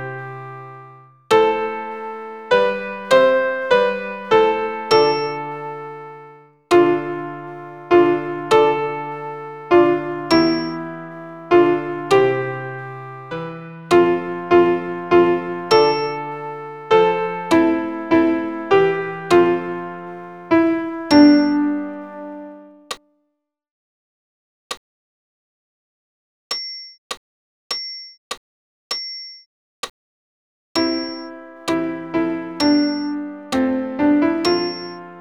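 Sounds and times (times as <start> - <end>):
alto piano accompaniment for a Credo: 0.0 - 22.9, 30.8 - 35.1.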